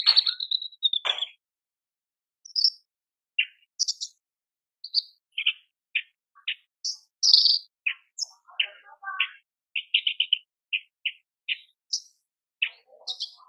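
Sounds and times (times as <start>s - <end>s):
Horsfield's bush lark singing: 0.0s - 1.4s, 2.4s - 13.4s.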